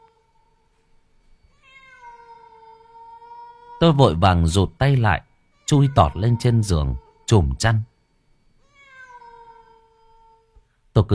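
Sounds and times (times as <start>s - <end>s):
stray cat wailing outdoors at night: 1.5s - 4.2s, 5.5s - 7.6s, 8.6s - 10.6s
speech: 3.8s - 7.9s, 11.0s - 11.1s.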